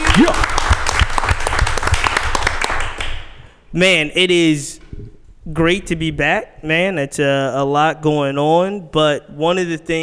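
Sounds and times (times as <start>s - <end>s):
audience applause: 0.0s - 3.1s
speech: 0.2s - 0.5s, 3.7s - 4.8s, 5.5s - 10.0s.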